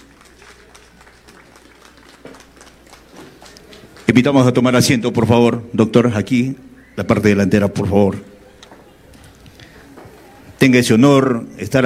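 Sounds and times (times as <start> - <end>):
crowd clapping: 0.0 - 5.0
speech: 4.1 - 8.3, 10.6 - 11.8.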